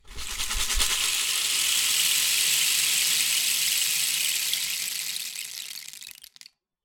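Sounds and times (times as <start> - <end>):
rain stick percussion: 0.0 - 6.5.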